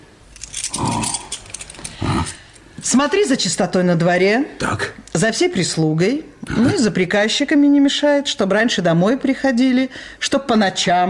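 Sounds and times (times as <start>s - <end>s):
house keys jangling as they are handed over: 0.3s - 2.6s
brief low vocal sounds: 0.7s - 2.5s
speech: 2.8s - 11.0s.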